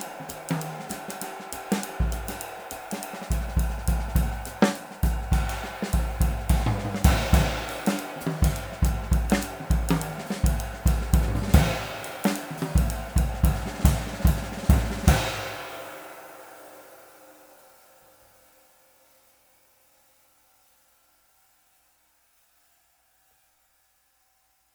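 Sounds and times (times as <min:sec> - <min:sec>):
24 inch Zildjian K Custom cymbal: 0:00.0 - 0:19.1.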